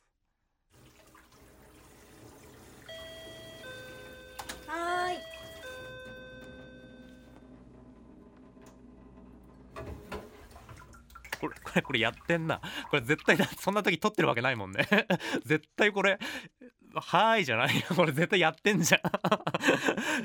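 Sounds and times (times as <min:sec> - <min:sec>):
kitchen tap running while a cup is washed: 0:00.7 - 0:05.9, 0:09.4 - 0:15.4
two-note chime: 0:02.9 - 0:07.3
person answering: 0:04.4 - 0:06.0
speech: 0:11.4 - 0:20.2
laughter: 0:11.6 - 0:13.7, 0:14.7 - 0:15.6, 0:17.6 - 0:20.2.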